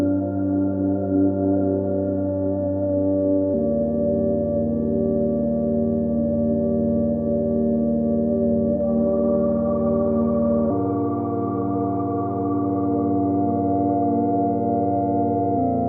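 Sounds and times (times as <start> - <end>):
droning Moog Subharmonicon synthesizer on tape: 0.0 - 15.8.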